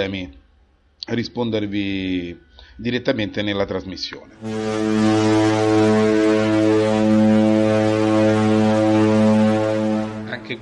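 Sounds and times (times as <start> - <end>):
speech: 0.0 - 0.4, 1.0 - 7.3
ship's siren horn: 4.4 - 10.6.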